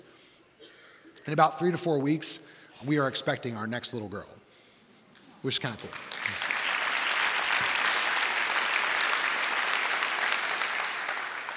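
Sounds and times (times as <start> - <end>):
speech: 1.3 - 4.4, 5.4 - 6.3
crowd clapping: 5.6 - 11.5.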